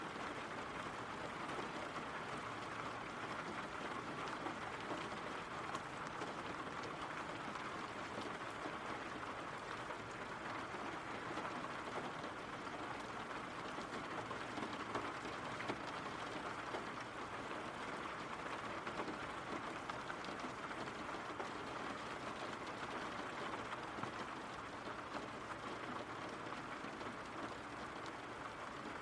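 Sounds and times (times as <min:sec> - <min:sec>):
rain: 0:00.0 - 0:29.0.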